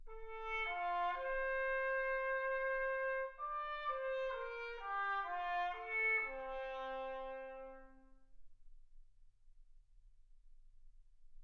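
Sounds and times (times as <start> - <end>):
trumpet: 0.0 - 8.3.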